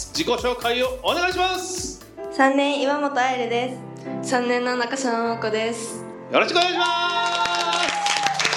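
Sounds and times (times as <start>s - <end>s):
speech: 0.0s - 7.2s
supporters cheering for two junior high school students in a studio: 6.7s - 8.4s.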